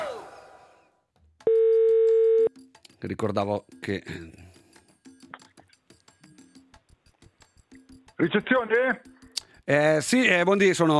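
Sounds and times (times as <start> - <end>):
telephone dial tone for a call to a reception desk: 1.5 - 2.5
speech: 3.0 - 4.4, 8.2 - 10.9.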